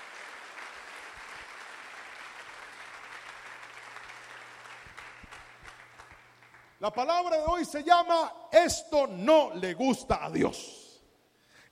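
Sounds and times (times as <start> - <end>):
audience applauding loudly: 0.0 - 7.3
speech: 6.8 - 10.8.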